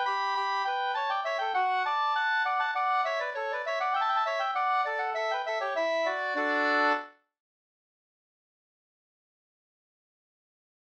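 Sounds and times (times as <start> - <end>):
slängpolska storpolska folk dance tune: 0.0 - 7.1.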